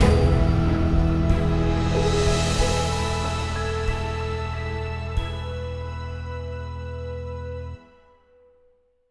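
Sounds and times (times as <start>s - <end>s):
brooding comedy sting: 0.0s - 7.2s.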